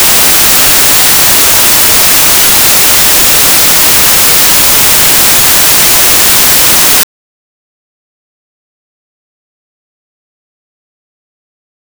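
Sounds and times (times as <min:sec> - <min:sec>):
white noise with m-sequence dither: 0:00.0 - 0:07.0.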